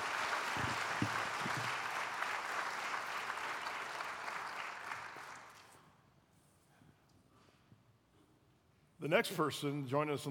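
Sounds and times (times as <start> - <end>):
audience applause: 0.0 - 5.6
speech: 9.1 - 10.3.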